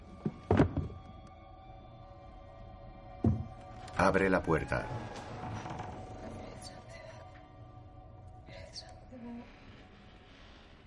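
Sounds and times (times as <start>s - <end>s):
speech: 4.0s - 5.3s
chair being pushed aside: 4.9s - 6.2s.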